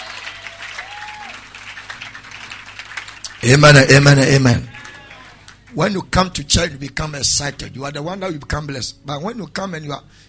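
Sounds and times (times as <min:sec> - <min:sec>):
audience clapping: 0:00.0 - 0:06.0
speech: 0:03.4 - 0:04.7, 0:05.8 - 0:10.2.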